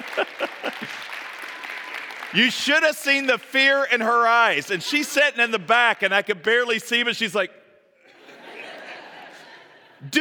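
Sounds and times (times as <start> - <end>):
laughter: 0.0 - 1.1, 8.0 - 10.2
class applauding: 0.0 - 2.8
speech: 2.3 - 7.6, 10.0 - 10.2.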